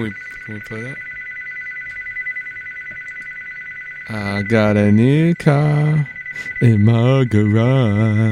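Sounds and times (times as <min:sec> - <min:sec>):
speech: 0:00.0 - 0:01.1, 0:04.1 - 0:08.2
telephone ringing with a warbling electronic tone: 0:00.0 - 0:08.2.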